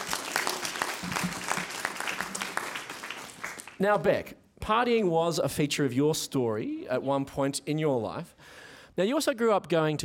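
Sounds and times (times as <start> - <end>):
audience applause: 0.0 - 3.8
speech: 3.8 - 10.0.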